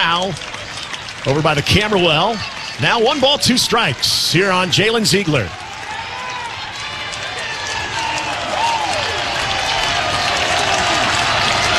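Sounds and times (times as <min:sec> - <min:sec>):
speech: 0:00.0 - 0:00.6, 0:01.2 - 0:05.6
large baseball crowd cheering and applauding: 0:00.0 - 0:11.7.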